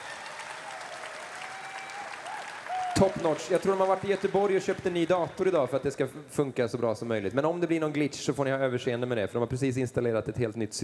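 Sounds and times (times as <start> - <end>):
audience applause: 0.0 - 5.4
speech: 3.0 - 10.8.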